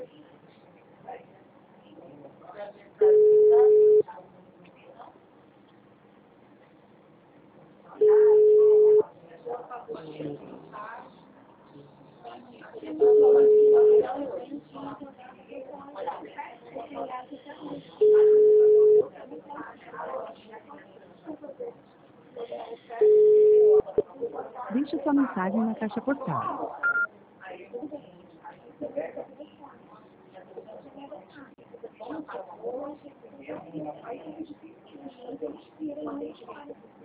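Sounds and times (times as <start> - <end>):
faint sounds: 0.0 - 37.0
telephone ringing tone on a redialed call: 3.0 - 4.0, 8.0 - 9.0, 13.0 - 14.1, 18.0 - 19.0, 23.0 - 23.9.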